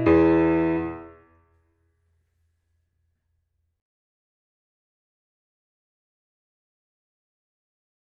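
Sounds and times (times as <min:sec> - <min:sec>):
blues music at 96 bpm: 0:00.0 - 0:01.1.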